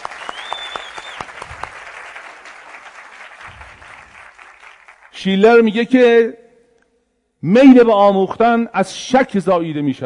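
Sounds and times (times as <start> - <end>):
audience at a motivational talk clapping: 0.0 - 5.4
speech: 5.2 - 6.4, 7.4 - 10.0.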